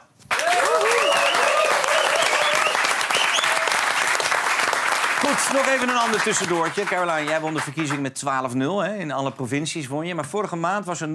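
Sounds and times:
whoops and cheering voices: 0.3 - 3.8
audience applause: 0.3 - 8.0
speech: 5.4 - 11.1.

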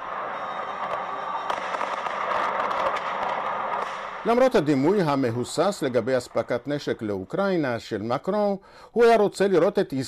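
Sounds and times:
traditional fireworks display around the Eiffel Tower in Paris: 0.0 - 7.9
speech: 4.2 - 10.0.

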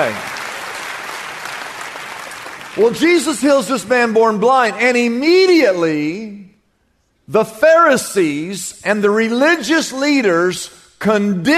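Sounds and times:
speech: 0.0 - 0.3, 2.8 - 6.5, 7.3 - 11.5
audience applause: 0.0 - 3.4.

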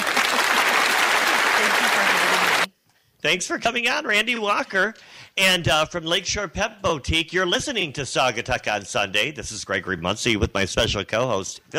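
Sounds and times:
crowd applauding: 0.0 - 2.7
speech: 3.2 - 11.7.

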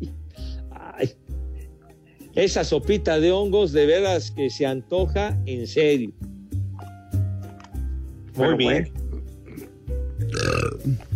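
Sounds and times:
speech: 1.0 - 1.3, 2.4 - 6.2, 8.4 - 9.0, 10.8 - 11.1
loud drawn-out burp: 9.1 - 11.1.

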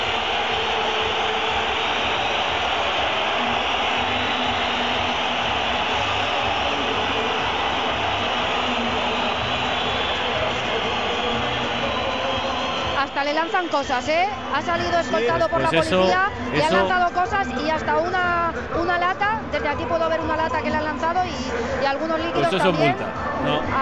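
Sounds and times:
huge stadium crowd roaring: 0.0 - 17.0
speech: 13.3 - 23.7.

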